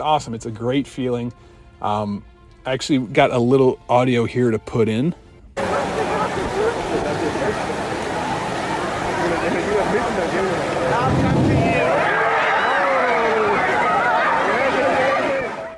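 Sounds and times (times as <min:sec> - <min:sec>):
speech: 0:00.0 - 0:05.2
crowd chatter: 0:05.6 - 0:15.7
crowd of swimmers screaming and shouting: 0:05.6 - 0:15.7
wave pool wave surging: 0:05.6 - 0:15.7.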